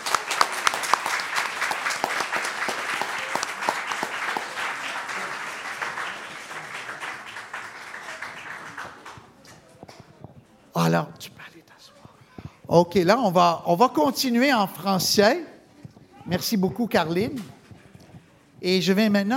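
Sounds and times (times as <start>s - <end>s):
audience applause: 0.0s - 10.4s
speech: 10.8s - 11.5s, 12.7s - 15.5s, 16.3s - 17.6s, 18.6s - 19.3s.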